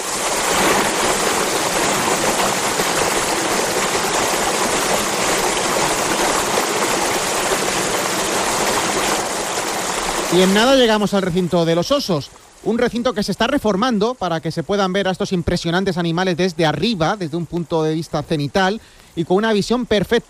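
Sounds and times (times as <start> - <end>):
turquoise river flowing over small waterfalls: 0.0 - 20.2
speech: 10.3 - 20.2.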